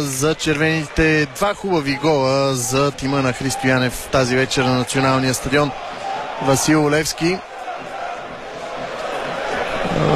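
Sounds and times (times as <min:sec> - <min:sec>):
speech: 0:00.0 - 0:07.5
stadium fans chanting for resignation: 0:03.0 - 0:10.1.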